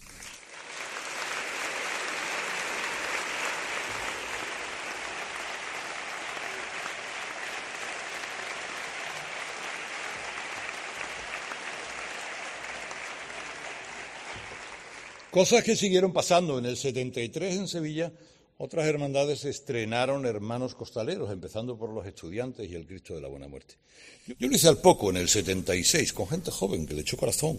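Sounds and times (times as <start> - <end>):
audience applause: 0.0 - 15.6
speech: 15.4 - 27.5.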